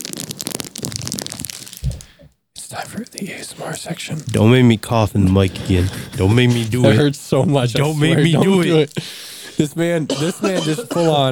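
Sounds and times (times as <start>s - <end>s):
bag of chips opening in the microphone: 0.0s - 4.4s
speech: 2.8s - 11.3s
laughter: 4.3s - 11.3s.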